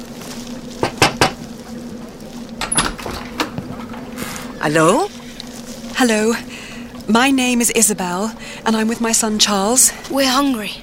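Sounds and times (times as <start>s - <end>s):
knocking on a wooden door: 0.8s - 1.4s
speech: 4.6s - 5.2s, 6.0s - 10.8s.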